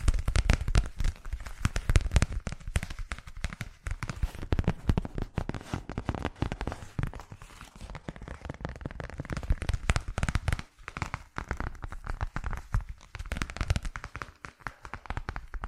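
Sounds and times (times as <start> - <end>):
ASMR trigger crackling taps and clicks: 0.0 - 15.6
soft rustling: 0.2 - 15.6.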